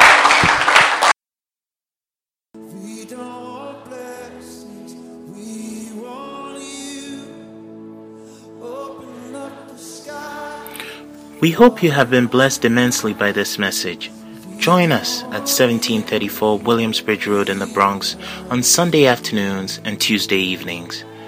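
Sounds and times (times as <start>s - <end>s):
audience clapping: 0.0s - 1.2s
sustained keyboard or organ music: 2.6s - 21.2s
speech: 11.4s - 21.1s.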